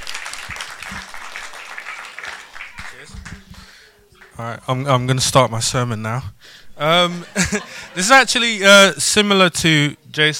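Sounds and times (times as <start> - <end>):
audience applause: 0.0 - 3.5
speech: 4.4 - 10.3
laughter: 6.9 - 8.4.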